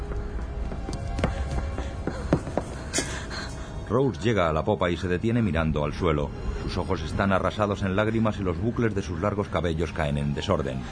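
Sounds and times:
young woman's running footsteps on a ship's wooden deck: 0.0s - 3.2s
speech: 3.9s - 10.9s.

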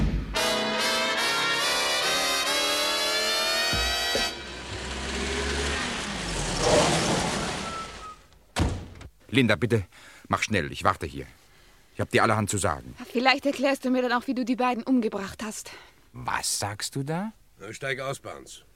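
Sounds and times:
long steady car horn blaring: 0.4s - 5.7s
car engine revving as the vehicle pulls away: 0.4s - 8.2s
speech: 9.4s - 11.4s, 12.0s - 18.7s.

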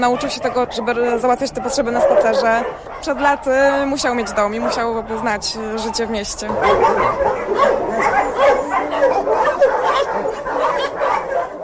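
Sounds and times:
speech: 0.0s - 8.7s
dogs barking at an animal shelter: 0.0s - 11.6s.

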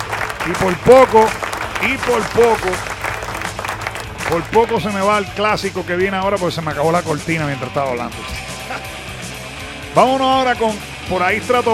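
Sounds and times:
applause sound effect: 0.0s - 5.3s
speech: 0.5s - 2.9s, 4.3s - 8.3s, 10.0s - 11.7s.

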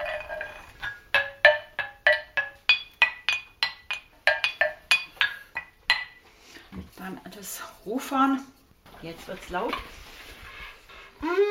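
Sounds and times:
small knuckle bones rattling: 0.0s - 6.2s
speech: 6.7s - 10.1s.

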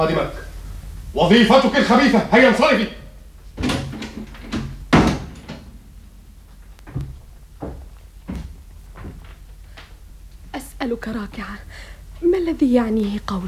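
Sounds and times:
speech: 0.0s - 0.4s, 1.2s - 3.0s, 11.0s - 13.4s
door being closed: 3.5s - 6.0s.

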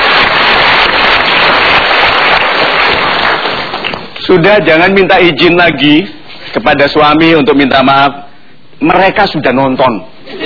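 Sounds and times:
audience applause: 0.0s - 4.2s
speech: 4.3s - 8.2s, 8.8s - 10.4s.

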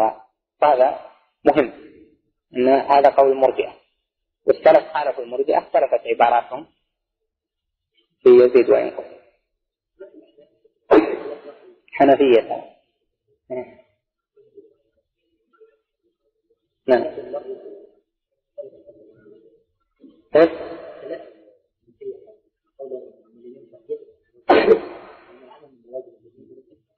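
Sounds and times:
speech: 0.0s - 1.9s, 2.5s - 3.8s, 4.4s - 6.8s, 8.2s - 9.2s, 12.0s - 12.7s, 13.5s - 13.8s, 16.9s - 17.7s, 20.3s - 21.3s
person sneezing: 10.9s - 11.5s, 24.5s - 25.4s.

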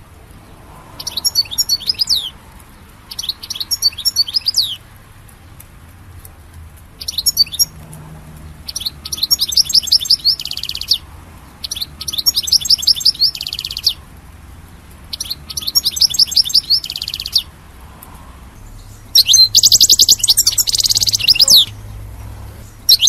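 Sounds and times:
European goldfinch twittering song: 1.0s - 2.4s, 3.1s - 4.8s, 7.0s - 7.8s, 8.4s - 14.0s, 15.1s - 17.6s, 18.6s - 23.0s.

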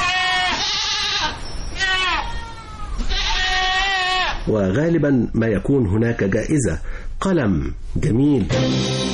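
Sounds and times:
sheep bleating: 0.0s - 4.4s
speech: 4.5s - 9.0s.

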